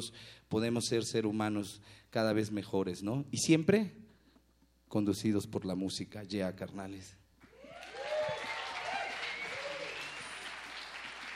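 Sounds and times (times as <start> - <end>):
speech: 0.0 - 4.1, 4.9 - 7.2
concert audience applauding: 7.4 - 11.3.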